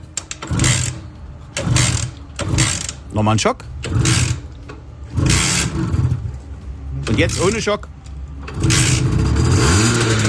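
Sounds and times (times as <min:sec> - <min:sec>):
Simson S51 two-stroke moped engine revving: 0:00.4 - 0:03.0, 0:03.8 - 0:06.4, 0:08.4 - 0:10.2
speech: 0:03.2 - 0:04.2, 0:07.2 - 0:07.9.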